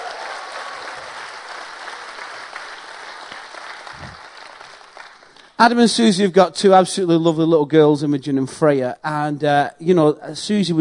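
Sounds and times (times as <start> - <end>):
round of applause: 0.0 - 5.6
speech: 5.6 - 10.7.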